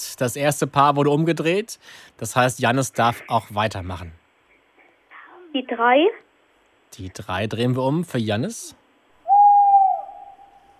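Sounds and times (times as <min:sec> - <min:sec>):
speech: 0:00.0 - 0:04.2, 0:05.5 - 0:06.2, 0:06.9 - 0:08.8
tawny owl hooting: 0:09.2 - 0:10.7.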